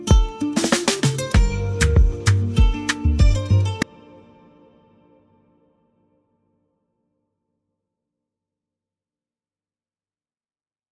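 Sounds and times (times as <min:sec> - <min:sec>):
music beat: 0:00.0 - 0:03.8.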